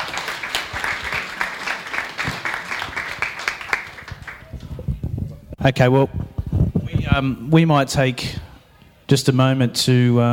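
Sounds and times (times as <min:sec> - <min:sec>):
audience applause: 0:00.0 - 0:04.8
speech: 0:05.6 - 0:06.3, 0:07.0 - 0:08.4, 0:09.1 - 0:10.3.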